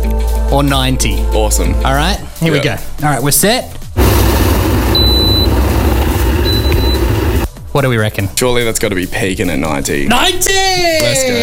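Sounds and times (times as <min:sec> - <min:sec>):
speech: 0:00.5 - 0:03.8, 0:07.8 - 0:11.4
kettle boiling: 0:04.0 - 0:07.5.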